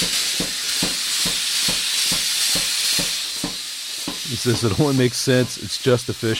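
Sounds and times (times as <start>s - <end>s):
blacksmith's power hammer: 0.0s - 4.3s
speech: 4.3s - 6.3s.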